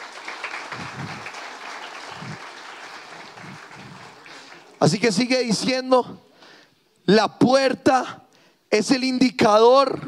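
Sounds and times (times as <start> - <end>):
audience applause: 0.0 - 5.2
speech: 4.8 - 6.3, 7.1 - 10.0.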